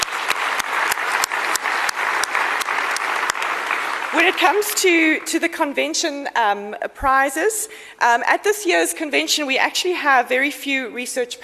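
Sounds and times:
crowd applauding: 0.0s - 5.4s
speech: 4.2s - 11.4s.

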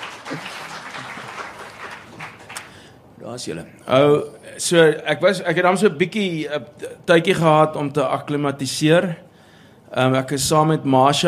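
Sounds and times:
audience applause: 0.0s - 2.9s
speech: 3.3s - 9.3s, 9.9s - 11.2s.

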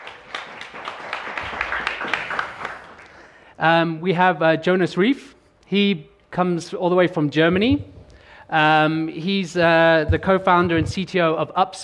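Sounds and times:
audience applause: 0.0s - 3.4s
speech: 3.6s - 7.9s, 8.5s - 11.8s.

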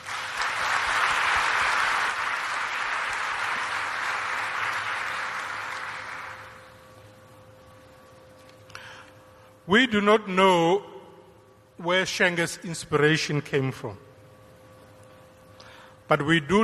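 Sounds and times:
audience applause: 0.0s - 6.7s
speech: 9.7s - 10.9s, 11.8s - 14.0s, 16.1s - 16.6s.

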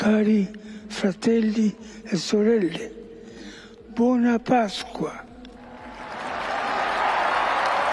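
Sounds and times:
speech: 0.0s - 3.0s, 4.0s - 5.3s
crowd in St. Peter's Square cheering and applauding: 5.7s - 7.9s.

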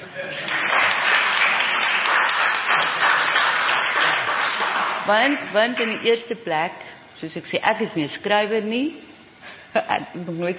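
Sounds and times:
audience applause: 0.3s - 6.0s
speech: 5.1s - 9.1s, 9.7s - 10.5s.

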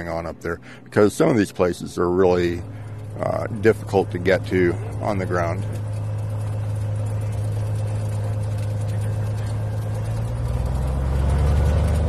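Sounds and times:
speech: 0.0s - 5.8s
Cessna small airplane engine revving for takeoff: 0.0s - 12.0s.

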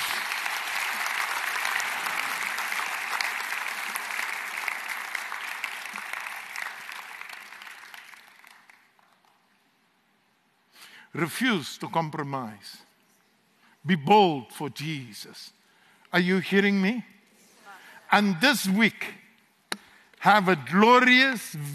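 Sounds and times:
audience applause: 0.0s - 9.4s
speech: 11.1s - 12.9s, 13.8s - 17.1s, 18.1s - 19.2s, 20.2s - 21.7s.

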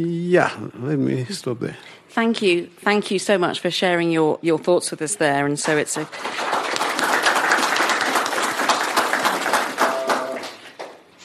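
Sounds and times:
speech: 0.0s - 6.7s
audience clapping: 5.6s - 11.1s.

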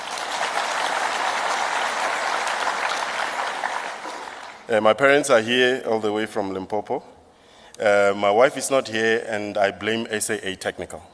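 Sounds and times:
audience clapping: 0.0s - 4.7s
speech: 4.7s - 7.1s, 7.8s - 11.1s.

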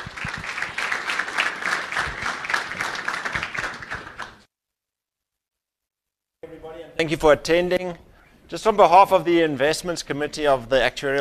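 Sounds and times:
audience applauding: 0.0s - 4.5s
speech: 6.5s - 11.1s.

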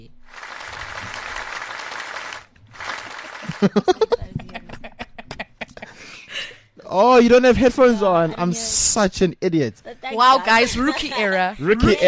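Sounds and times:
round of applause: 0.0s - 3.9s
laughter: 2.8s - 6.1s, 7.5s - 8.6s
speech: 3.6s - 4.2s, 6.9s - 12.0s.

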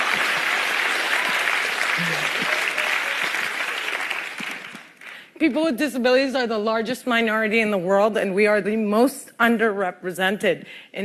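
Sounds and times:
audience applause: 0.0s - 5.3s
speech: 2.0s - 2.6s, 5.4s - 11.0s.

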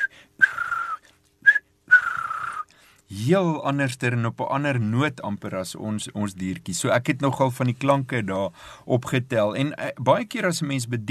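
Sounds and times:
person whistling an imitation of a turtle dove call: 0.0s - 2.7s
speech: 3.1s - 11.0s.

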